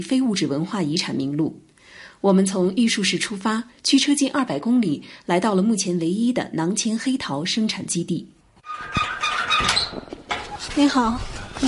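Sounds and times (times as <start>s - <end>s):
speech: 0.0s - 10.0s, 10.8s - 11.6s
door creaking open: 8.6s - 11.6s.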